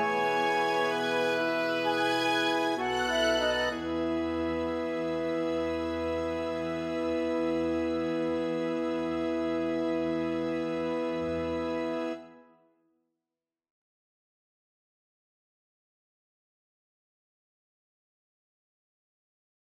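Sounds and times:
chamber orchestra playing an intermezzo: 0:00.0 - 0:12.4.

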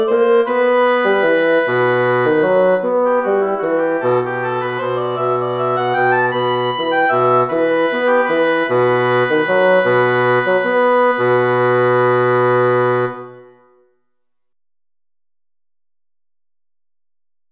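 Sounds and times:
bassoon in a duo: 0:00.0 - 0:13.9
oboe in a duo: 0:00.0 - 0:13.9.

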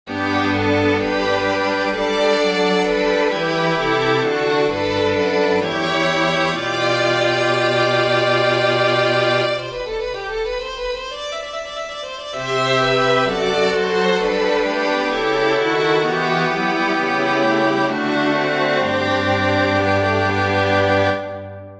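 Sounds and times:
string quartet: 0:00.1 - 0:21.7.

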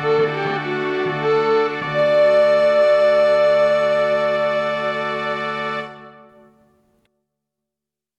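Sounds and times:
small orchestra playing a march: 0:00.0 - 0:06.3.

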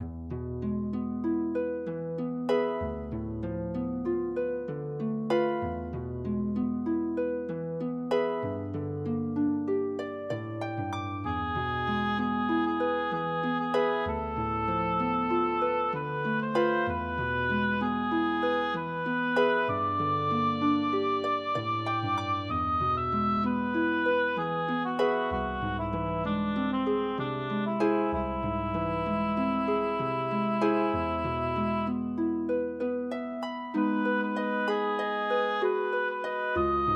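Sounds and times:
harp: 0:00.0 - 0:36.9
oboe: 0:10.3 - 0:32.3, 0:33.4 - 0:36.9.

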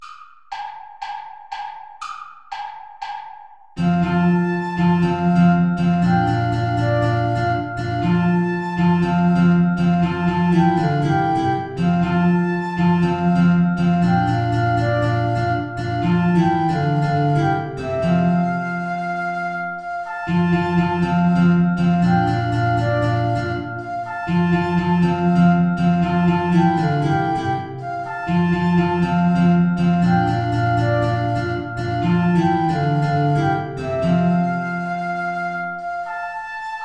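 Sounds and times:
play-along backing track without guitar: 0:03.8 - 0:36.4.

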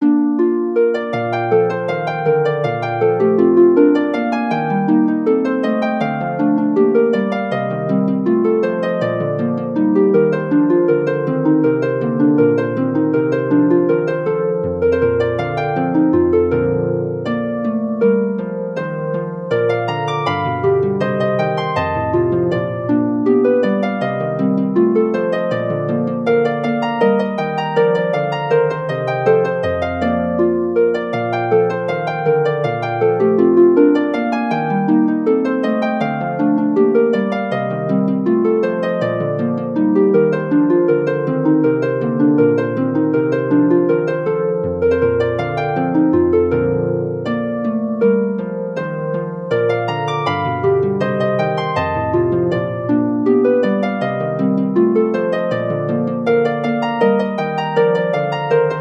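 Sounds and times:
harp: 0:00.0 - 0:58.8.

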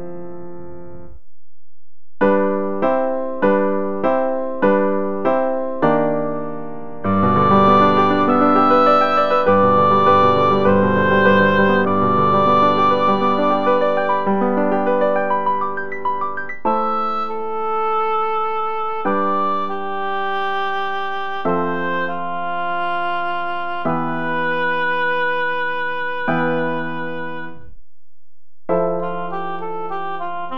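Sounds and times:
piano: 0:00.0 - 0:01.2, 0:02.2 - 0:27.8, 0:28.7 - 0:30.5
oboe: 0:07.0 - 0:27.7, 0:28.9 - 0:30.5.

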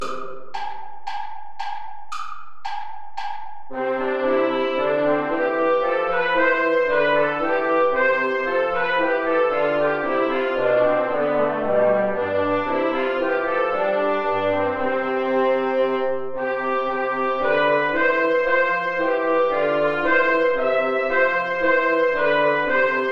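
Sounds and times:
backing track without guitar: 0:00.0 - 0:23.1.

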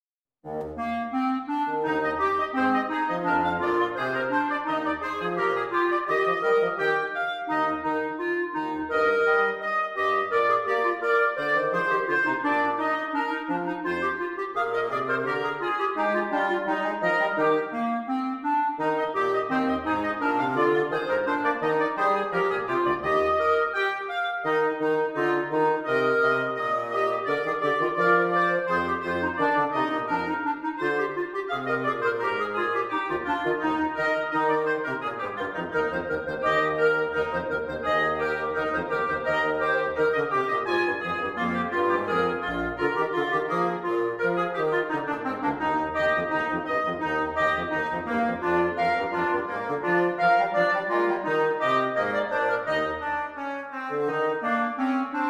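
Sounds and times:
trio playing vivace: 0:00.5 - 0:55.2.

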